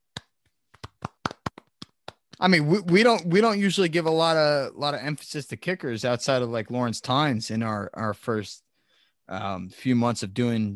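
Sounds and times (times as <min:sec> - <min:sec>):
round of applause: 0:00.9 - 0:03.2
speech: 0:02.4 - 0:08.6, 0:09.3 - 0:10.7.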